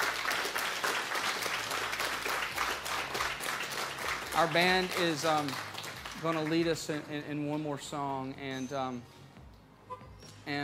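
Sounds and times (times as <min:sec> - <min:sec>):
audience hand clapping applause: 0:00.0 - 0:06.7
speech: 0:04.4 - 0:09.1.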